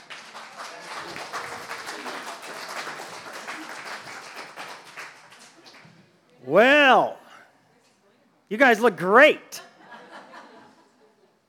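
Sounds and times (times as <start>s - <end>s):
audience applause: 0.0s - 5.8s
speech: 6.5s - 7.1s, 8.5s - 9.7s
murmured voices: 6.5s - 7.3s.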